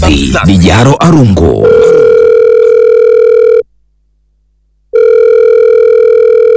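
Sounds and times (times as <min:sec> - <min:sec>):
speech: 0:00.1 - 0:01.9
electronic telephone ringing for a call into a studio: 0:01.6 - 0:03.6, 0:04.9 - 0:06.5.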